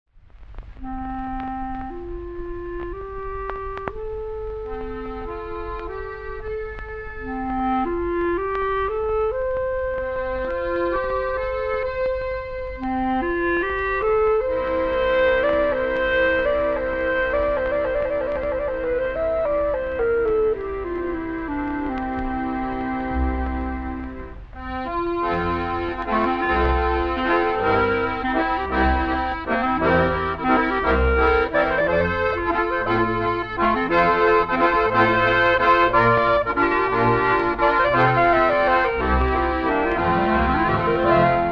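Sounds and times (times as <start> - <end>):
waltz music: 0.8 - 41.4.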